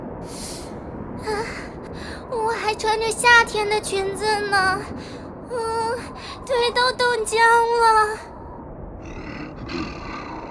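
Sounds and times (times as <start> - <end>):
speech: 2.7 - 5.1, 6.5 - 8.3
polar bear roaring: 9.0 - 10.4.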